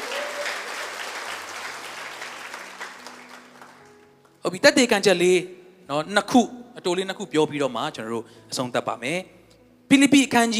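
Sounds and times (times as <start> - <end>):
church congregation clapping after a prayer during a Sunday sermon: 0.0 - 4.2
speech: 4.5 - 10.5.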